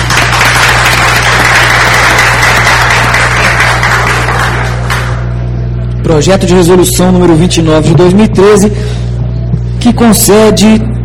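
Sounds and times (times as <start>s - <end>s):
applause: 0.0s - 5.3s
speech: 6.1s - 9.0s, 9.8s - 10.9s.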